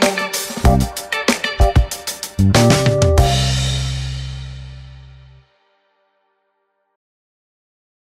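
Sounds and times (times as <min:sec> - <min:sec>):
fast action music: 0:00.0 - 0:05.2.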